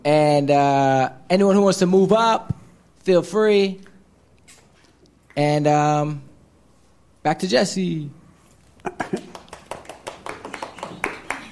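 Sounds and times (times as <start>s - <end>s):
speech: 0.0s - 3.9s, 5.4s - 6.3s, 7.2s - 8.2s, 8.8s - 9.3s
few people clapping: 8.8s - 11.5s.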